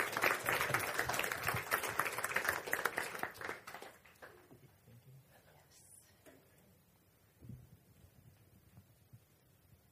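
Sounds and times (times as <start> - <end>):
crowd applauding: 0.0 - 4.7.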